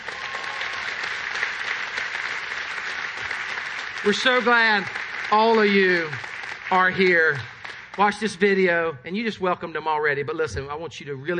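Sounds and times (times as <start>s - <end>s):
audience applause: 0.0s - 8.6s
speech: 4.0s - 11.3s.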